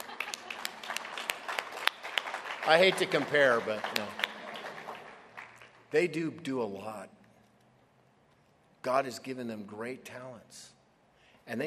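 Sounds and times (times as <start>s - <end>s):
church congregation clapping for worship musicians: 0.0s - 5.8s
speech: 2.6s - 4.2s, 5.9s - 7.2s, 8.8s - 10.8s, 11.5s - 11.6s.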